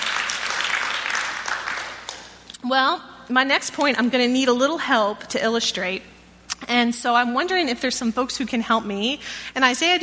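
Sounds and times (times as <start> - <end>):
audience clapping: 0.0 - 2.5
speech: 2.6 - 10.0.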